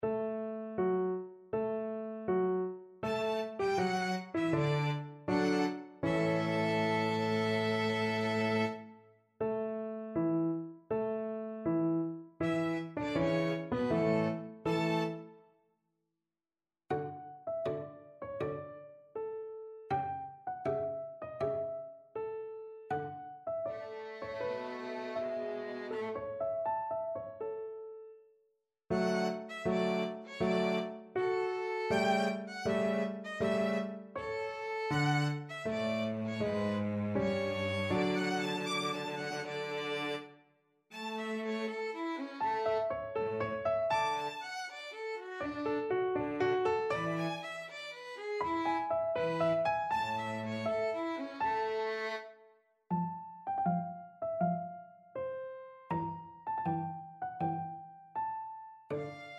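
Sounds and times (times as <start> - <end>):
piano: 0.0 - 15.6, 16.9 - 59.3
violin: 3.0 - 9.0, 12.4 - 15.4, 23.6 - 26.6, 28.9 - 53.0, 58.9 - 59.3
cello: 3.1 - 9.0, 12.4 - 15.3, 23.7 - 26.5, 28.9 - 40.4, 41.0 - 53.1.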